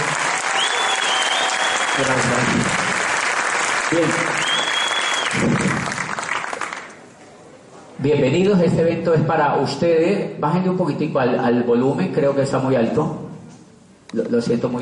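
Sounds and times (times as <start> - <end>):
audience applause: 0.0 - 7.0
speech: 2.0 - 2.8, 3.9 - 4.4, 8.0 - 13.2, 14.1 - 14.7.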